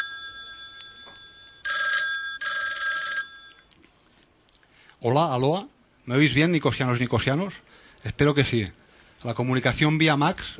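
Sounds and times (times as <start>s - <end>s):
telephone ringing with electronic trill: 0.0s - 3.7s
speech: 5.0s - 10.5s.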